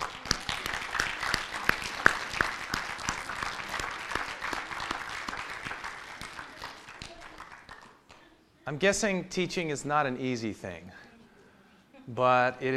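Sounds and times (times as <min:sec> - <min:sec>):
audience applause: 0:00.0 - 0:07.9
speech: 0:08.7 - 0:11.0, 0:12.1 - 0:12.7.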